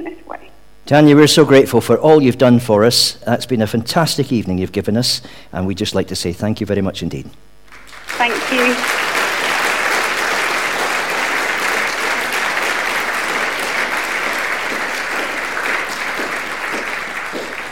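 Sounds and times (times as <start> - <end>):
speech: 0.9 - 7.6
applause in Exeter: 7.7 - 17.7.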